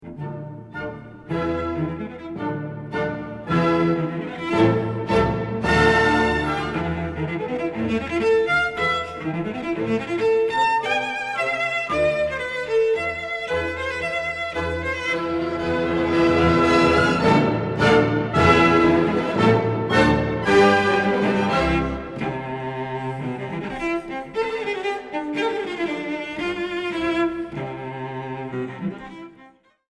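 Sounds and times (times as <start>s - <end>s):
cello concerto: 0.0s - 29.8s.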